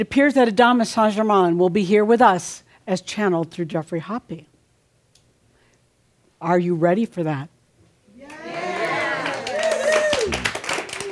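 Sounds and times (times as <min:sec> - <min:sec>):
speech: 0:00.0 - 0:04.5, 0:06.4 - 0:07.5
live studio audience applauding: 0:08.3 - 0:11.1.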